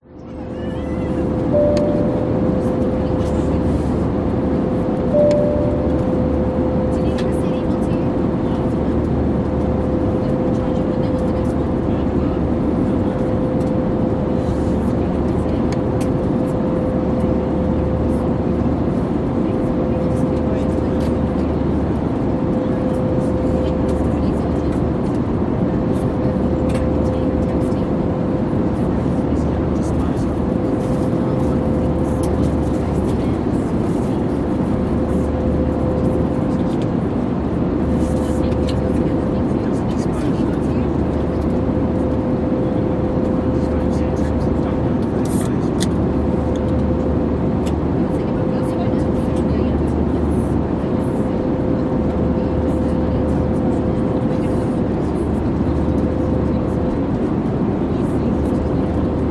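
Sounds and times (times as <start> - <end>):
Airbus A320 cruising constant engine drone: 0.0 - 59.2
people chatting inside airplane: 0.0 - 59.2.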